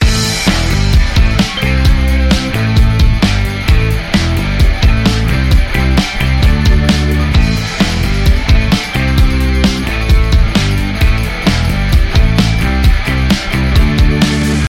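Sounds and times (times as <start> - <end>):
upbeat indie rock loop: 0.0 - 14.6.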